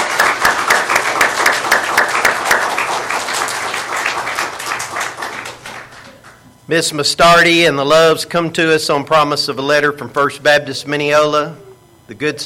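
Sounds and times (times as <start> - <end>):
audience applause, hand clapping: 0.0 - 6.5
speech: 6.7 - 12.4.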